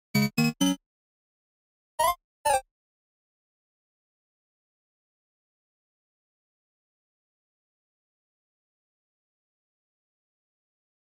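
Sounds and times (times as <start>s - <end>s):
retro game music: 0.1s - 0.8s.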